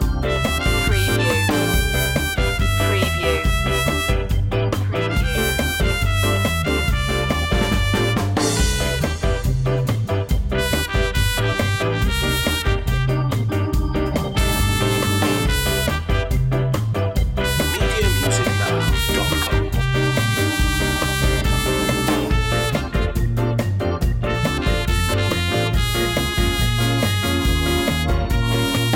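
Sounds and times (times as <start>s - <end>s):
ska loop: 0.0s - 28.9s.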